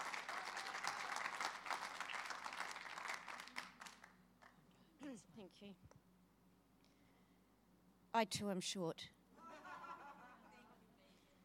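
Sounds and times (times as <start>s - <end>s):
crowd applause: 0.0s - 4.2s
speech: 5.4s - 6.0s, 8.2s - 9.2s
laughter: 9.4s - 10.8s.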